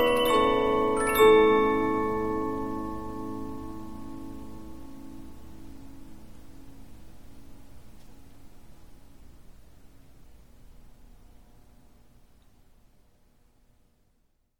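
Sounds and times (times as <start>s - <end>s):
15-inch Polyphon music box playing: 0.0s - 4.9s.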